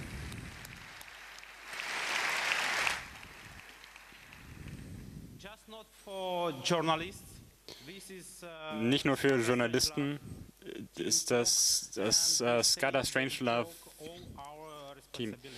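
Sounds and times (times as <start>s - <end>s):
crowd applause: 0.0s - 4.8s
speech: 5.7s - 7.3s, 7.9s - 14.3s, 15.2s - 15.5s.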